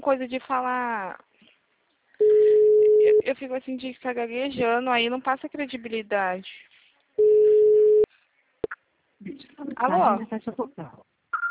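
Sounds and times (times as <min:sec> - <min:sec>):
speech: 0:00.0 - 0:01.3, 0:03.0 - 0:07.4, 0:09.2 - 0:11.1
telephone busy tone after a call is hung up: 0:02.2 - 0:03.2, 0:07.2 - 0:08.1.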